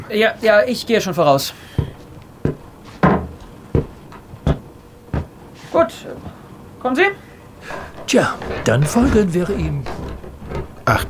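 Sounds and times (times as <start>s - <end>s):
speech: 0.1s - 1.9s, 5.8s - 10.2s, 10.9s - 11.0s
door opening: 1.8s - 5.1s, 7.6s - 11.0s
sharp wooden clunks and rattles of door: 1.8s - 5.4s, 7.6s - 11.0s.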